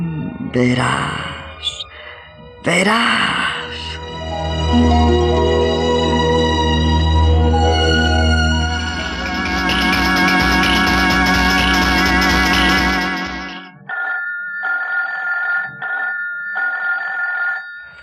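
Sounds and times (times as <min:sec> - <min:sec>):
music: 0:00.0 - 0:13.8
speech: 0:00.5 - 0:01.7, 0:02.6 - 0:03.4, 0:04.7 - 0:05.5
telephone bell ringing: 0:13.4 - 0:18.0.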